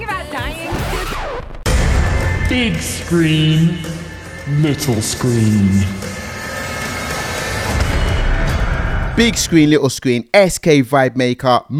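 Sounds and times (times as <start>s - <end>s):
movie trailer booming rumble: 0.7s - 6.9s, 7.5s - 9.7s
speech: 2.5s - 3.9s, 4.5s - 6.1s, 9.2s - 11.7s.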